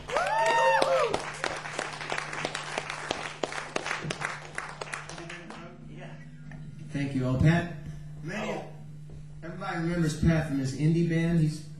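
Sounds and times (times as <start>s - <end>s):
audience in Nuremberg applauding a bass guitarist: 0.0s - 5.7s
speech: 7.0s - 8.4s, 9.8s - 11.7s.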